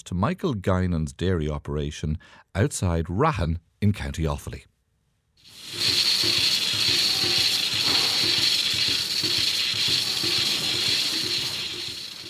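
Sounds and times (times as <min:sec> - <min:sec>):
speech: 0:00.0 - 0:04.7
robotic milking machine working: 0:05.5 - 0:12.2.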